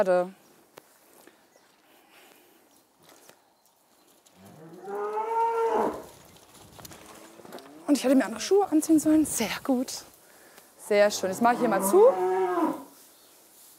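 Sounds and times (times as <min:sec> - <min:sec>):
speech: 0:00.0 - 0:00.4, 0:07.9 - 0:10.1, 0:10.9 - 0:12.4
cattle mooing, calf and cow: 0:04.4 - 0:06.0, 0:11.2 - 0:12.9.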